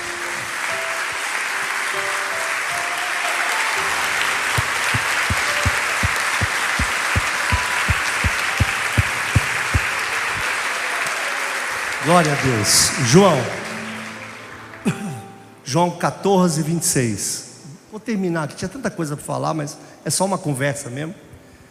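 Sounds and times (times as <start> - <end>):
audience applause: 0.0 - 14.4
low regular thumps: 4.6 - 10.4
speech: 12.1 - 13.6, 15.7 - 21.3.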